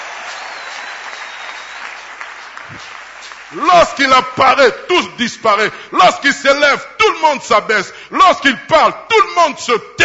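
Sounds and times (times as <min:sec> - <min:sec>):
church congregation applauding to acclaim God during a service: 0:00.0 - 0:05.0
speech: 0:02.7 - 0:10.0.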